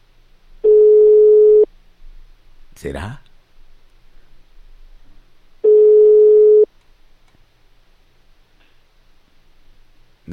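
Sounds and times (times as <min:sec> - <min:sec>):
telephone tone while a number is dialed: 0:00.6 - 0:01.7, 0:05.6 - 0:06.7
speech: 0:02.8 - 0:03.3.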